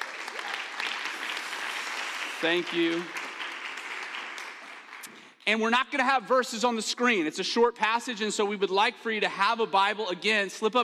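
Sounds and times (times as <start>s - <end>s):
audience applause: 0.0s - 5.1s
speech: 2.4s - 3.2s, 5.5s - 10.8s.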